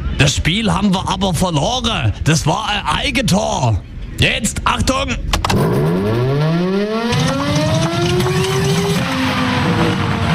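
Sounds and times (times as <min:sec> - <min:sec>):
speech: 0:00.2 - 0:05.9
civil defense siren starting then failing: 0:05.6 - 0:10.3.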